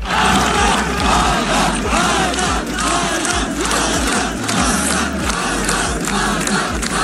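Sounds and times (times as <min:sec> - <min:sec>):
laughter: 0:00.0 - 0:07.0
spectators chanting a runner's name: 0:00.0 - 0:07.0.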